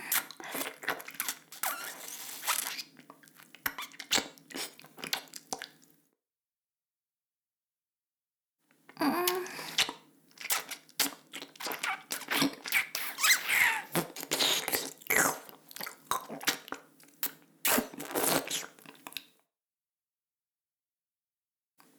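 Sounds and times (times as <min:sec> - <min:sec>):
ASMR ear licking sounds: 0:00.1 - 0:05.8, 0:09.3 - 0:19.3.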